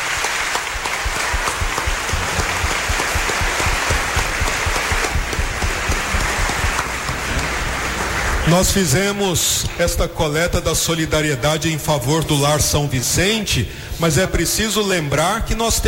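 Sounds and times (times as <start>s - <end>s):
round of applause: 0.0s - 9.0s
speech: 8.5s - 15.8s.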